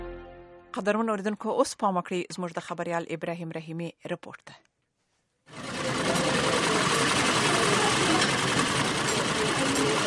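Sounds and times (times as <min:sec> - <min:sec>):
speech: 0:00.7 - 0:04.7
several sewing machines whirring stitching cloth in a women's tailoring salon: 0:05.5 - 0:10.0.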